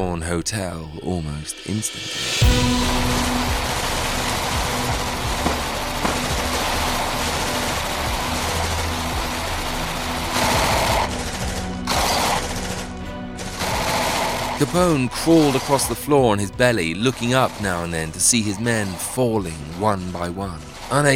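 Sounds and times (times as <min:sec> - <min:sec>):
speech: 0:00.0 - 0:03.1, 0:14.6 - 0:21.1
gunmen spraying bullets at the Hawthorn Hotel: 0:02.6 - 0:14.7.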